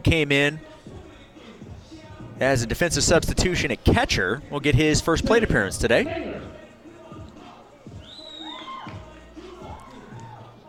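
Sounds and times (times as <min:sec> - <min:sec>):
speech: 0:00.0 - 0:00.7, 0:02.4 - 0:06.5
fans cheering at baseball game: 0:05.8 - 0:06.6, 0:07.9 - 0:10.6.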